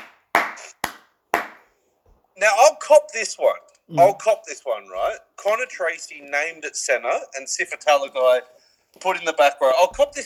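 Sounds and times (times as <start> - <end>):
sharp hand claps: 0.0 - 1.7
speech: 2.4 - 10.2.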